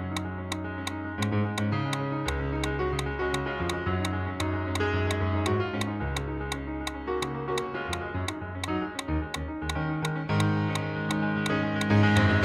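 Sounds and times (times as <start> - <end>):
metronome ticking at 170 steps per minute: 0.0 - 12.4.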